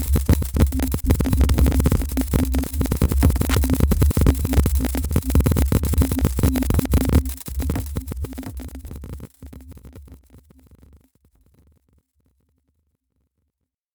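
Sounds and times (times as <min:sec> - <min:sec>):
drum drops: 0:00.0 - 0:08.4.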